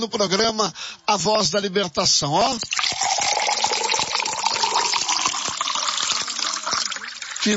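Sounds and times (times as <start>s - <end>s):
speech: 0.0s - 3.1s
water pouring into a glass: 2.6s - 7.5s.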